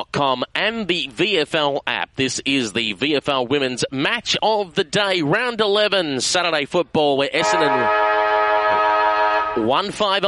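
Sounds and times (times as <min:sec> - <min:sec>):
speech: 0:00.2 - 0:08.1, 0:09.6 - 0:10.2
football ground quarter-time siren at Windy Hill: 0:07.4 - 0:09.8.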